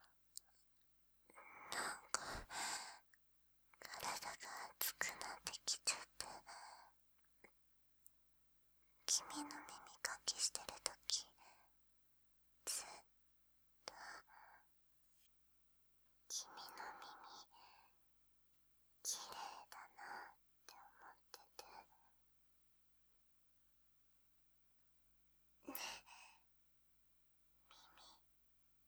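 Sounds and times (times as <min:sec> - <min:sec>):
sweet ASMR whispering: 0:01.3 - 0:02.5, 0:03.8 - 0:06.9, 0:09.1 - 0:11.7, 0:12.7 - 0:13.1, 0:13.9 - 0:14.6, 0:16.3 - 0:17.9, 0:19.0 - 0:22.1, 0:25.7 - 0:26.4, 0:27.6 - 0:28.3.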